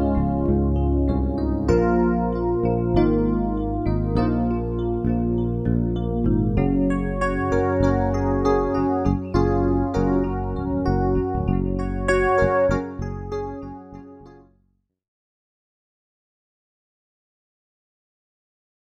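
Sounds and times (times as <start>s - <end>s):
jazz piano: 0.0s - 14.5s.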